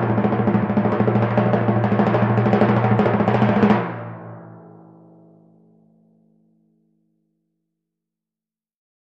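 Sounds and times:
timpani roll: 0.0 - 5.3.

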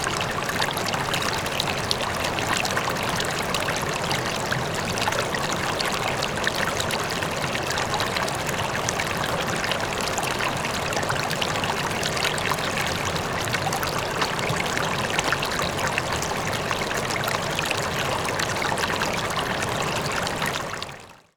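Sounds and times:
small water stream flowing: 0.0 - 21.3.

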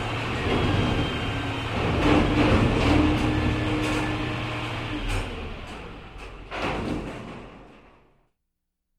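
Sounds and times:
noisy machinery in workshop: 0.0 - 8.2.

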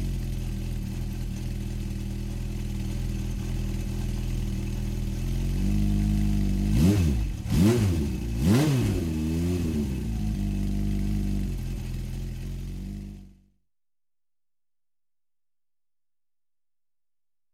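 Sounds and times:
supermoto bike engine starting and idling: 0.0 - 13.5.

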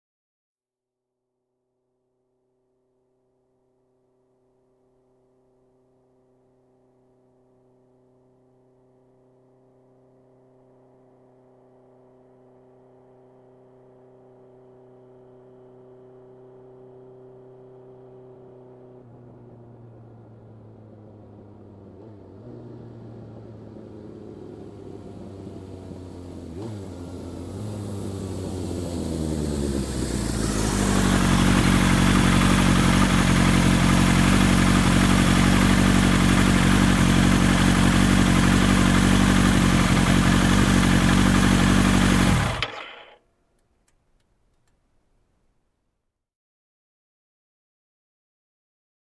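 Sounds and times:
motorcycle approaching and parking: 5.4 - 43.2.

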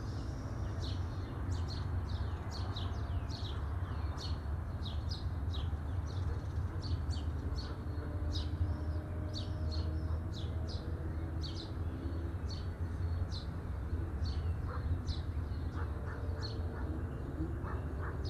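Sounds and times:
birds chirping at midday: 0.0 - 18.2.

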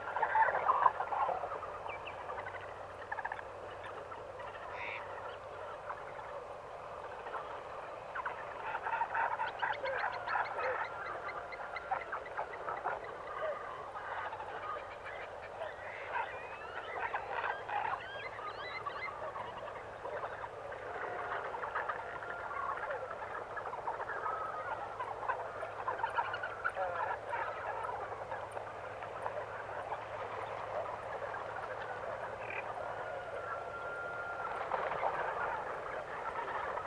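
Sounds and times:
many distant bird calls: 0.0 - 36.8.

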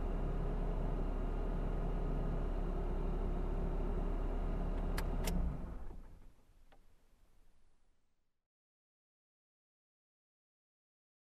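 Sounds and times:
calming ride in car: 0.0 - 8.0.

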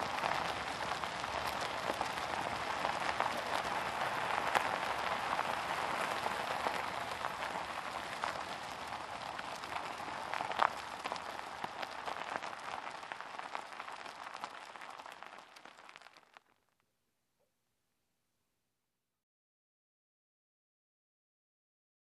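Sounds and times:
car driving on gravel with open window: 0.0 - 16.3.

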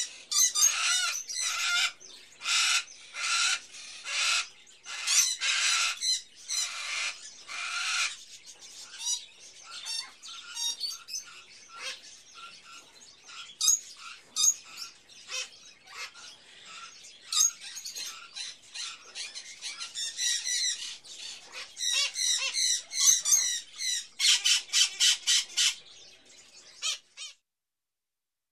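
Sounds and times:
hatchling birds chirping: 0.0 - 27.4.

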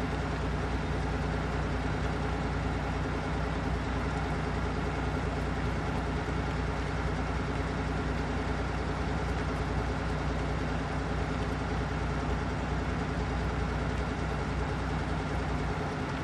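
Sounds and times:
car driving steadily: 0.0 - 16.2.

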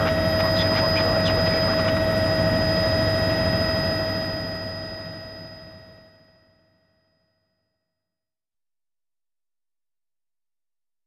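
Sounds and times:
helicopter taking off heard from the cockpit: 0.0 - 5.8.

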